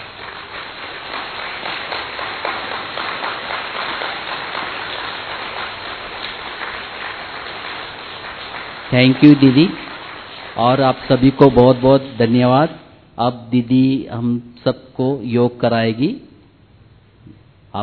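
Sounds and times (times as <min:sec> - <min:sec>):
audience applause: 0:00.0 - 0:12.1
speech: 0:08.9 - 0:09.8, 0:10.6 - 0:16.3, 0:17.2 - 0:17.8.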